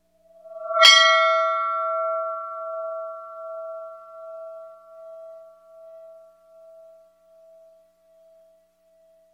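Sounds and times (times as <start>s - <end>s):
bell strike: 0.5s - 7.8s.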